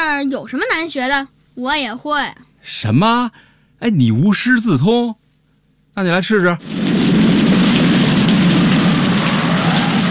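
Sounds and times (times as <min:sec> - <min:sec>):
speech: 0:00.2 - 0:05.2, 0:06.0 - 0:06.9
heavy rain falling: 0:06.6 - 0:10.0.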